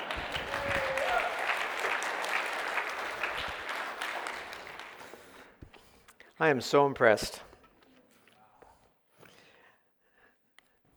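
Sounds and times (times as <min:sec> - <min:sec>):
audience clapping: 0:00.0 - 0:05.5
speech: 0:06.4 - 0:07.5.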